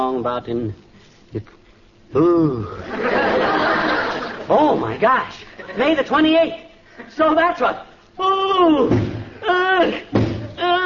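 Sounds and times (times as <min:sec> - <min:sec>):
speech: 0:00.0 - 0:03.9, 0:04.5 - 0:10.8
laughter: 0:02.7 - 0:06.0
head banging against a wall: 0:08.8 - 0:09.4, 0:10.1 - 0:10.6.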